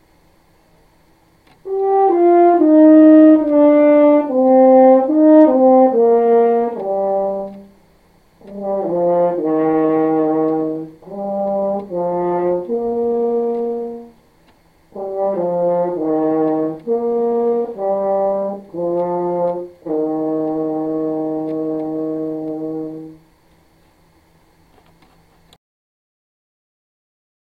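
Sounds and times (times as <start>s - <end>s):
horn: 1.6s - 14.2s, 14.9s - 23.3s.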